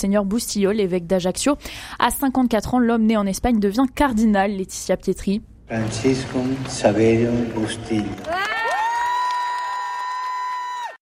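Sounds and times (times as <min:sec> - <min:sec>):
speech: 0:00.0 - 0:08.5
crowd cheering in Saint Peter's Square: 0:05.7 - 0:10.9.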